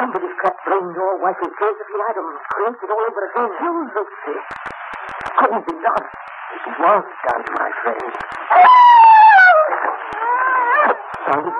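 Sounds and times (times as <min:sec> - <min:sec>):
speech: 0:00.0 - 0:09.1, 0:11.3 - 0:11.5
dog howling and whimpering: 0:08.5 - 0:11.5.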